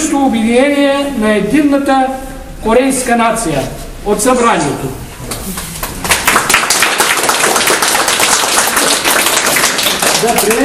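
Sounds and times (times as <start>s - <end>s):
speech: 0.1s - 5.7s, 10.2s - 10.6s
audience applause: 5.6s - 10.6s.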